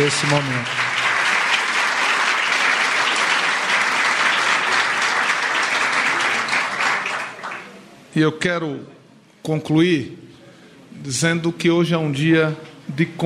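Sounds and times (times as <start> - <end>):
speech: 0.0 - 0.9, 8.2 - 10.3, 10.9 - 13.2
audience applause: 0.0 - 7.8.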